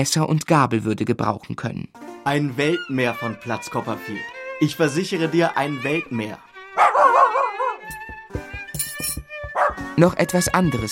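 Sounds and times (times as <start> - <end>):
speech: 0.0 - 7.1, 10.0 - 10.9
small dog whining: 6.7 - 7.8
small dog yapping and yipping: 6.8 - 7.8, 9.5 - 9.8.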